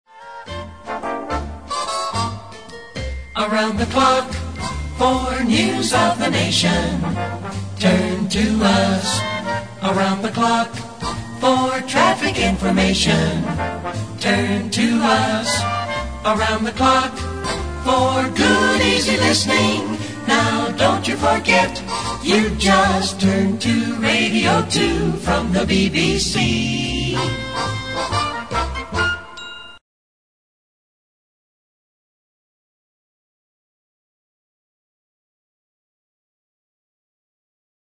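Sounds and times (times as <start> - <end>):
jingle: 0.3 - 10.1, 11.1 - 29.8.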